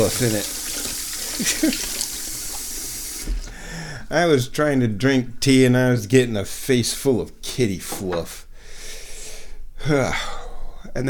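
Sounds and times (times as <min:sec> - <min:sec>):
speech: 0:00.0 - 0:00.6, 0:01.4 - 0:02.0, 0:04.1 - 0:08.4, 0:09.8 - 0:10.3
teacup washed under kitchen tap: 0:00.0 - 0:03.5.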